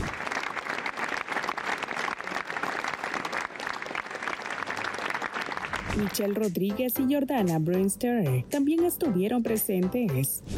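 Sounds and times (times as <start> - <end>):
audience applause ovation: 0.0 - 6.1
speech: 6.0 - 10.5.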